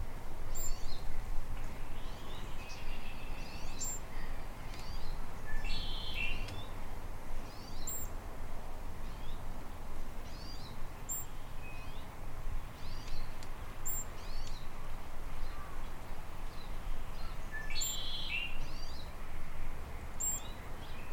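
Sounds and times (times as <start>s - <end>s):
Anna's Hummingbird: 0.0s - 6.8s, 7.4s - 8.3s, 9.0s - 21.1s.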